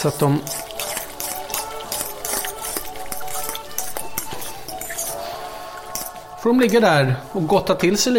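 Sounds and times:
speech: 0.0 - 0.6, 6.4 - 8.1
sliced vegetables tossed in oil in a bowl: 0.0 - 6.4.

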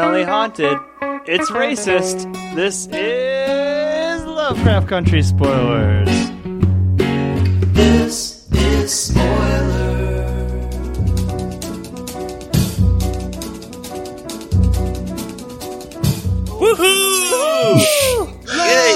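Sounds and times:
speech: 0.0 - 3.3, 4.5 - 6.7, 8.9 - 10.0
rhythmic bass-heavy music: 4.2 - 18.9
voice imitating a monster's howl: 16.5 - 18.9.

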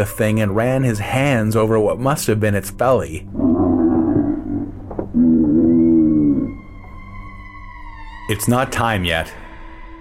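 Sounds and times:
speech: 0.0 - 3.5, 8.3 - 9.4
six-eyed bovine creature screaming: 3.3 - 6.6.

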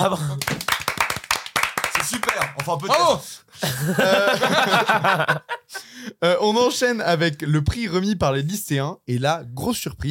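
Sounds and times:
laughter: 0.0 - 0.6, 3.6 - 5.9
speech: 0.0 - 0.6, 2.0 - 10.1
brisk applause from a few people: 0.1 - 3.1.

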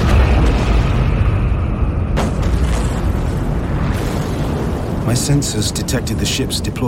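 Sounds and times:
massive thermonuclear explosion with deep loud rumble: 0.0 - 6.3
speech: 5.1 - 6.8.

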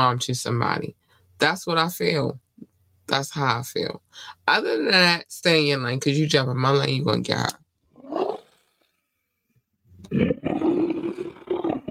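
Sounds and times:
speech: 0.0 - 2.4, 3.1 - 7.6, 10.1 - 10.6
big cat roaring: 8.0 - 8.6, 10.0 - 11.9.

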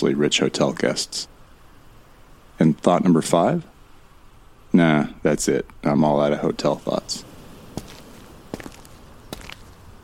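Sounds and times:
speech: 0.0 - 1.4, 2.6 - 3.7, 4.7 - 7.3
footsteps crunching on dust and grit across a ballroom: 7.6 - 9.8.

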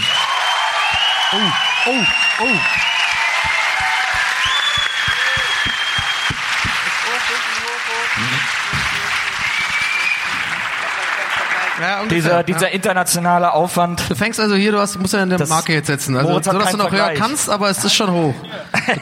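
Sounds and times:
live audience applause: 0.0 - 12.5
speech: 1.3 - 3.0, 11.8 - 19.0
laughter: 8.1 - 9.9, 18.4 - 19.0.

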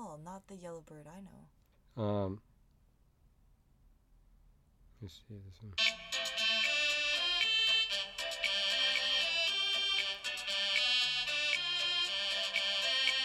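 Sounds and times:
speech: 0.4 - 2.5, 5.0 - 6.0
Haitian compa music recording: 5.8 - 13.2.

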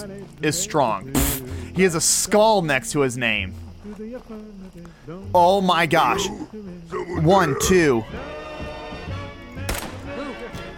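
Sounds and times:
speech: 0.2 - 8.2
.308 rifle shot in a video game: 9.7 - 10.1.

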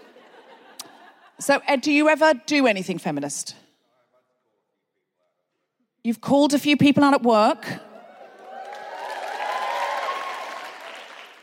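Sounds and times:
laughter: 0.0 - 1.4
speech: 1.4 - 3.6, 6.0 - 7.9
cheers and whoops: 8.0 - 11.3
audience applause: 8.0 - 11.4.

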